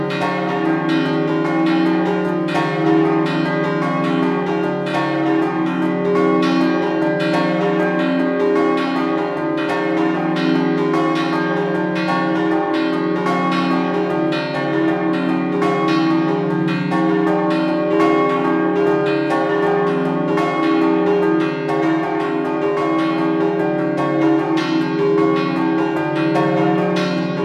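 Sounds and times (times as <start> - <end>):
bells ringing in Povoletto: 0.0 - 27.4.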